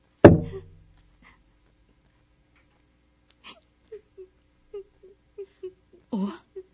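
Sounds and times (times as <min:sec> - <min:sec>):
heavy thud: 0:00.3 - 0:00.8
person crying and sobbing: 0:00.4 - 0:00.7, 0:03.4 - 0:06.7.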